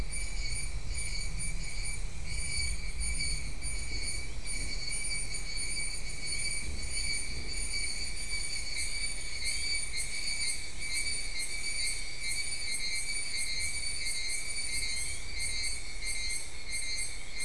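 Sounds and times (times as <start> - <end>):
insects trilling: 0.0 - 17.4.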